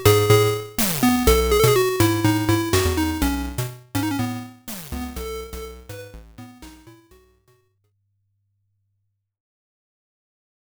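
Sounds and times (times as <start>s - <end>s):
8-bit music: 0.0s - 7.4s.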